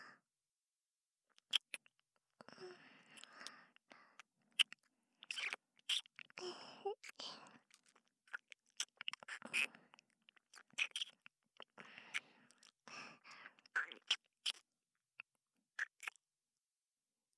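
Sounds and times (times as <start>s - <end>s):
gentle kiss: 1.4s - 1.8s, 3.1s - 3.6s, 4.6s - 6.3s, 7.0s - 9.8s, 10.6s - 11.2s, 13.7s - 14.6s, 15.8s - 16.1s.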